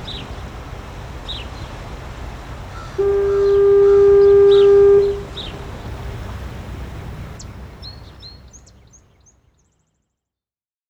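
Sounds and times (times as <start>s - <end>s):
foghorn at Portland Head Light: 2.6s - 8.1s.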